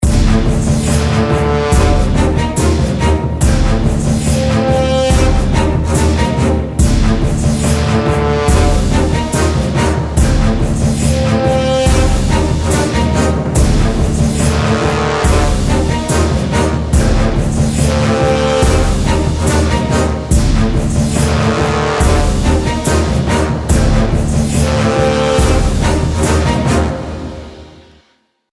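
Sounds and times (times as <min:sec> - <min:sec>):
battle music: 0:00.0 - 0:28.0.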